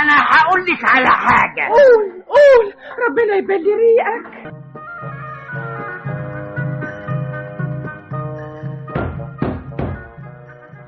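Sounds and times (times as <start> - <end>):
speech: 0.0 - 4.6
heavy knocking on a wooden door: 8.9 - 10.2.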